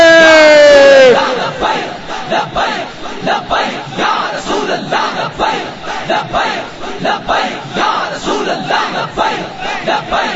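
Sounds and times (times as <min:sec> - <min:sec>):
one raised voice shouting: 0:00.0 - 0:01.4
large crowd chanting a religious slogan at a rally: 0:00.0 - 0:10.3.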